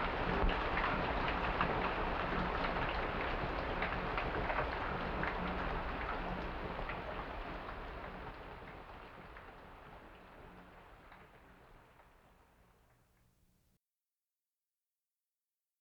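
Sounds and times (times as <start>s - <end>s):
rain: 0.0s - 13.4s.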